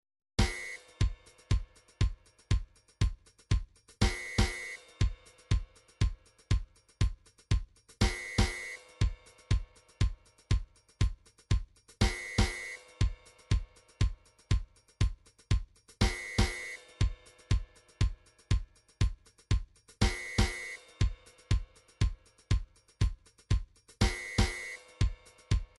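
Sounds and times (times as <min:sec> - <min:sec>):
MIDI drum patterns: 0:00.4 - 0:25.7.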